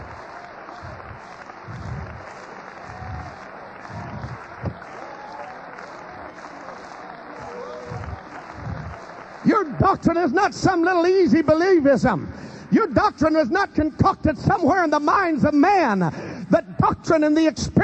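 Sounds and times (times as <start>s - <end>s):
audience clapping hands: 0.0s - 16.0s, 16.8s - 17.8s
speech: 9.4s - 16.2s, 16.8s - 17.8s.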